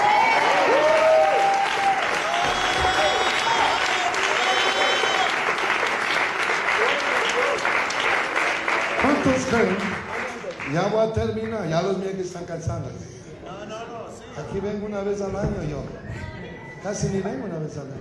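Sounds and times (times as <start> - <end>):
scattered cheers: 0.0 - 10.5
crowd clapping: 0.0 - 11.8
speech: 9.3 - 10.0, 10.7 - 13.2, 14.4 - 18.0.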